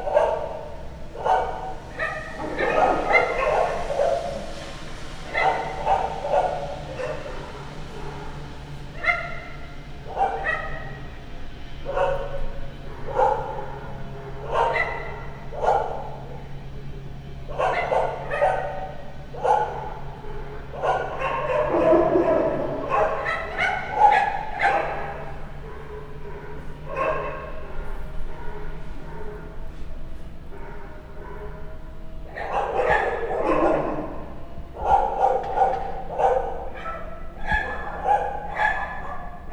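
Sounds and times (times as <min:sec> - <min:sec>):
dogs barking at night: 0:00.0 - 0:39.5.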